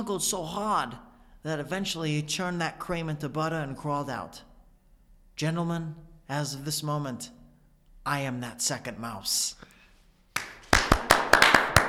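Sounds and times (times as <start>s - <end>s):
speech: 0.0s - 4.5s, 5.4s - 7.4s, 8.0s - 9.7s
person clapping emphatically: 10.4s - 11.8s.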